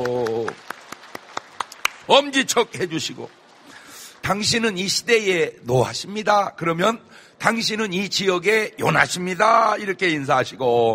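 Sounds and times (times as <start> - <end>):
congregation clapping during a church service greeting: 0.0 - 4.9
speech: 2.1 - 3.4, 4.3 - 10.9.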